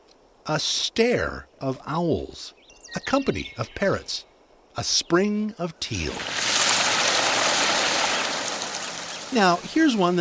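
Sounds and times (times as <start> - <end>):
speech: 0.5 - 6.4, 9.3 - 10.1
large starling flock chattering: 7.2 - 10.0.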